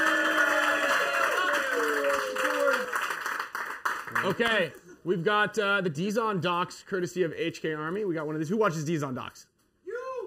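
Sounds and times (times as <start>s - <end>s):
live audience applauding: 0.0s - 4.7s
speech: 4.2s - 9.5s.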